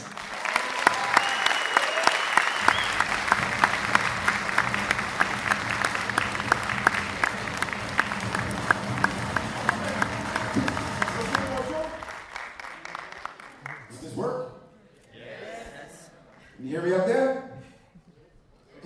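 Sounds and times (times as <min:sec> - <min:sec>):
audience applause: 0:00.0 - 0:14.0.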